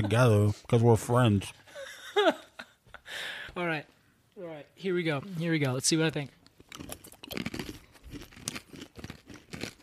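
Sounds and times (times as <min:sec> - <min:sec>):
speech: 0:00.0 - 0:02.4, 0:03.1 - 0:07.0
someone chewing crunchy black walnuts: 0:06.4 - 0:09.8.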